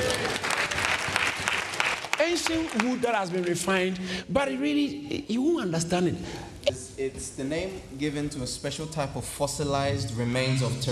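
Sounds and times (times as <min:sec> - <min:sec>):
audience clapping: 0:00.0 - 0:04.0
speech: 0:02.3 - 0:10.8.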